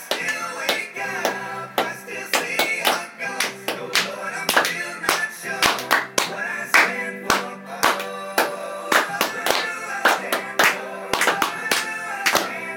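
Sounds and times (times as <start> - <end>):
clapping: 0.1 - 12.6.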